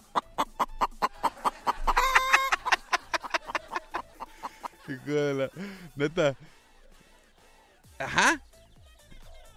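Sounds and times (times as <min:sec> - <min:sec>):
chickens clucking in a henhouse, played back from an audio message: 0:00.0 - 0:05.3
laughter: 0:00.0 - 0:06.6, 0:08.0 - 0:08.4
speech: 0:04.9 - 0:06.6, 0:08.0 - 0:08.4.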